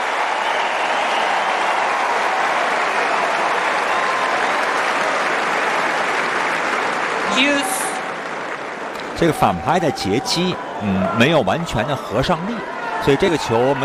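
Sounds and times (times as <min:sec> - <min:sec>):
applause for a good tennis shot: 0:00.0 - 0:10.7
speech: 0:09.2 - 0:13.8.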